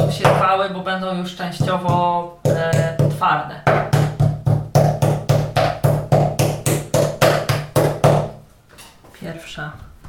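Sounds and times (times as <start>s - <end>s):
mallet pounding meat slices for beef rolls: 0.0s - 0.5s, 1.5s - 8.4s
speech: 0.0s - 4.0s, 9.5s - 9.9s.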